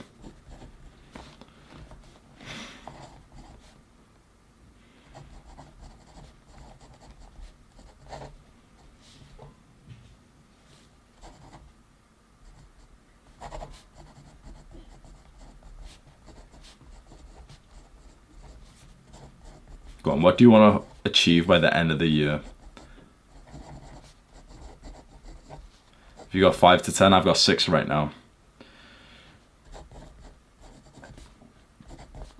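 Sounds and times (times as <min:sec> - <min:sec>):
pen scratching on paper writing a list of goals: 0:00.0 - 0:00.9, 0:02.8 - 0:03.8, 0:05.0 - 0:08.4, 0:11.2 - 0:11.7, 0:12.4 - 0:20.0, 0:22.4 - 0:26.5, 0:29.6 - 0:32.3
speech: 0:20.0 - 0:22.6, 0:26.4 - 0:28.2.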